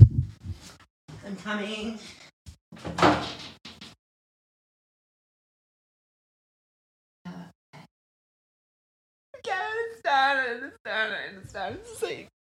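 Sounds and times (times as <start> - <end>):
speech: 1.3 - 2.2, 10.1 - 12.3
door opening and closing as someone leaves: 2.8 - 4.0.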